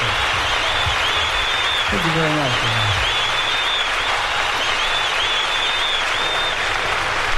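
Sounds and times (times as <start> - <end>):
faint high whistles: 0.0 - 6.8
large concert crowd applauding: 0.0 - 7.3
speech: 1.9 - 3.0.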